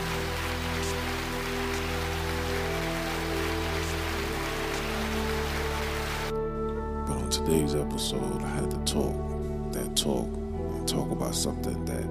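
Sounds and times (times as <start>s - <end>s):
applause from many hands: 0.0s - 6.3s
speech: 7.4s - 12.0s.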